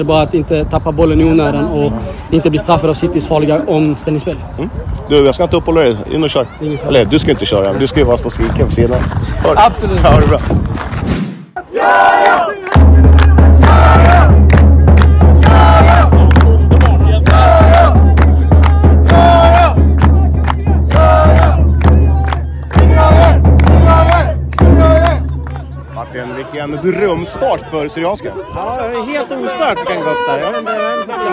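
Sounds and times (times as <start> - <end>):
speech: 0.0 - 11.2, 26.8 - 31.3
football supporters chanting in the stands: 11.6 - 26.9.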